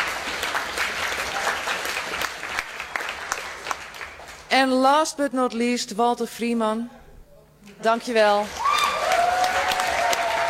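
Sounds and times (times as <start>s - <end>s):
audience clapping: 0.0s - 4.5s, 8.4s - 10.4s
speech: 4.5s - 7.0s, 7.8s - 8.6s.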